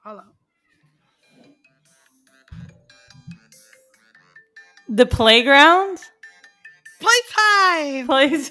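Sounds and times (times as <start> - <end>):
phone ringtone playing an electronic tune: 1.7 - 8.0
speech: 4.9 - 6.0, 7.7 - 8.4.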